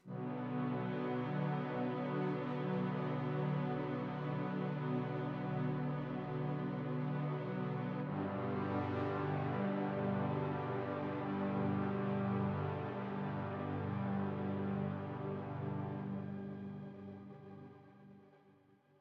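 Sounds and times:
interactive music: 0:00.0 - 0:18.9.

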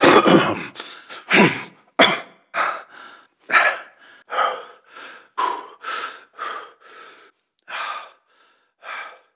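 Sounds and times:
person coughing: 0:00.0 - 0:02.4.

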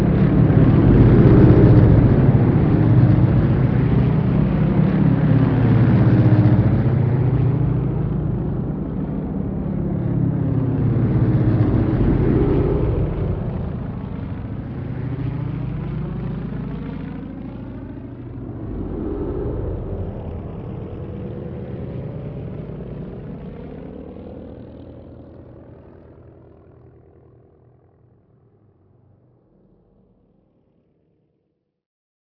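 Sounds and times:
ambient vehicles: 0:00.0 - 0:16.0, 0:18.2 - 0:23.1.

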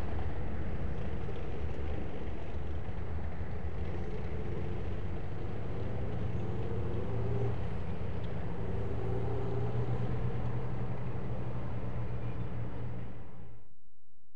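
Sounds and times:
tanks passing by in a hangar: 0:00.0 - 0:13.4.

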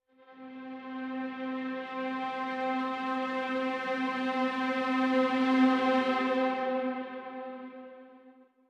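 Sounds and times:
interactive music: 0:00.0 - 0:08.6.

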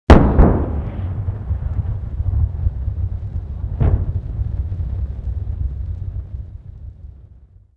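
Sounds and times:
artillery fire: 0:00.1 - 0:05.4.

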